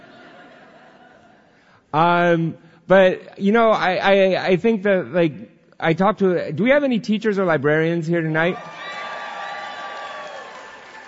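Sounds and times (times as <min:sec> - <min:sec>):
speech: 0:01.9 - 0:08.8
audience clapping: 0:08.5 - 0:11.0.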